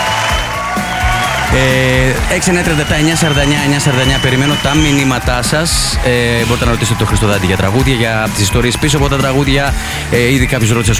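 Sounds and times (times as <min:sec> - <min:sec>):
loud spontaneous applause: 0:00.0 - 0:10.7
speech: 0:01.6 - 0:10.9.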